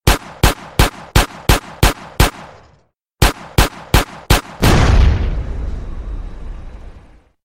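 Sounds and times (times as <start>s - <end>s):
pistol shot: 0.0s - 5.3s.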